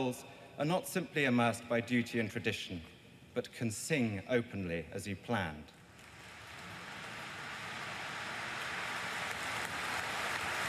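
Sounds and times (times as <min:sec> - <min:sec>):
speech: 0:00.0 - 0:05.8
applause of huge crowd outside church: 0:06.0 - 0:10.6.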